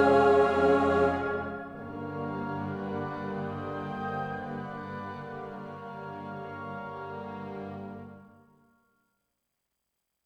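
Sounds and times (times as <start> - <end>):
castle music: 0.0 - 8.2.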